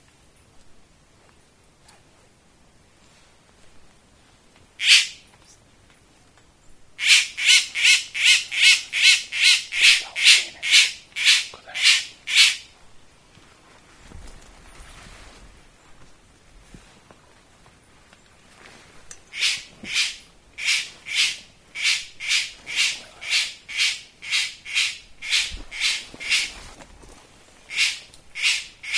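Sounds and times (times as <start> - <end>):
background hiss: 0.0 - 28.9
bird harsh rasping calls: 4.8 - 5.2, 7.0 - 12.7, 19.3 - 26.6, 27.7 - 28.9.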